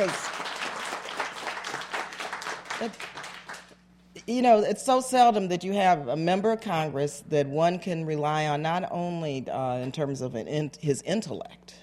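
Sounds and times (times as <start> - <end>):
speech: 0.0 - 0.4, 2.8 - 3.2, 4.3 - 11.8
audience applauding a congressman at a political gathering: 0.0 - 3.7.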